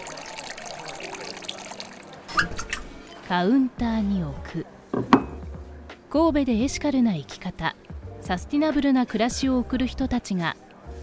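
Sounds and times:
tap water pouring into a glass: 0.0s - 2.9s
speech: 3.3s - 5.4s, 6.1s - 10.6s
glass clink: 5.0s - 5.4s.

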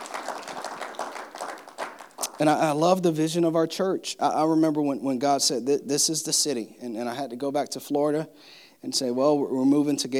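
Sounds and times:
soft scattered applause from a group of people: 0.0s - 2.7s
speech: 2.4s - 10.1s.

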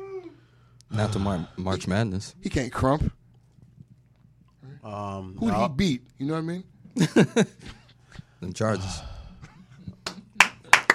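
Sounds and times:
speech: 0.9s - 3.2s, 4.8s - 7.8s, 8.4s - 9.1s
person applauding: 10.0s - 10.9s.

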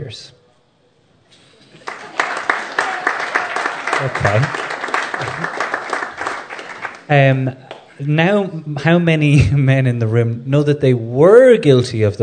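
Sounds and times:
speech: 0.0s - 0.4s, 4.0s - 5.6s, 7.1s - 12.2s
audience applause: 1.5s - 7.1s.

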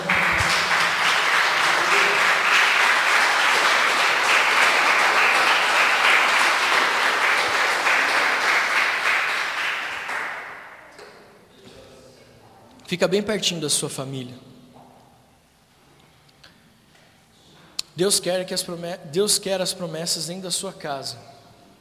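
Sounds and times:
audience applauding loudly: 0.0s - 10.8s
speech: 12.9s - 14.6s, 18.0s - 21.4s.

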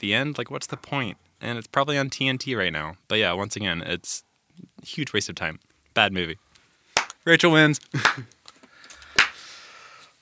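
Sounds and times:
speech: 0.0s - 6.5s, 7.2s - 8.4s
slow clap: 7.0s - 7.2s, 7.8s - 9.5s.

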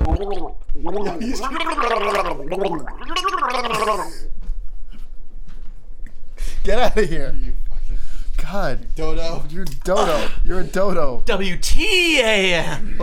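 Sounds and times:
person gargling water: 0.0s - 4.3s
speech: 0.2s - 4.3s, 6.6s - 7.6s, 8.5s - 13.0s.

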